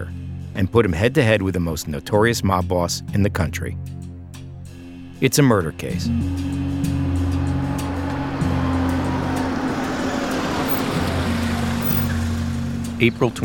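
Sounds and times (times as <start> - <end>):
speech: 0.6 - 4.0, 5.2 - 6.9, 13.0 - 13.4
car pulling up to Pannone's Meat Market: 6.2 - 13.4.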